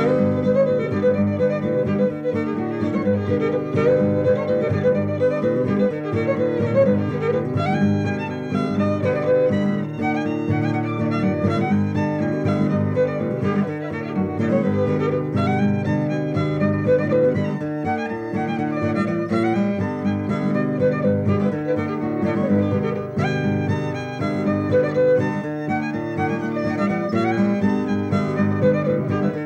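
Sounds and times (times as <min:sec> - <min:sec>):
greasy strings: 0:00.0 - 0:29.4.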